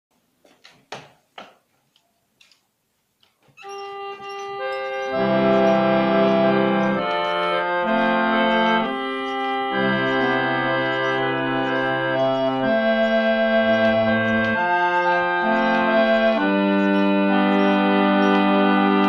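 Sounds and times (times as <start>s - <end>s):
antique harmonium: 3.6s - 19.0s.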